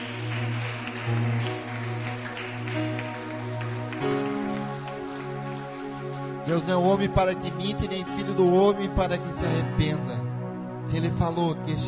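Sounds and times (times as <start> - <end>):
audience applauding: 0.0 - 7.5
speech: 6.5 - 10.3, 10.9 - 11.8.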